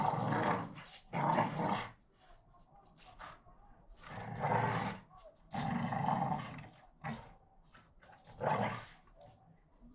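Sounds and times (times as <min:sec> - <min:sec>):
two pit bulls growling and snarling while fighting: 0:00.0 - 0:01.9, 0:04.0 - 0:05.0, 0:05.6 - 0:07.3.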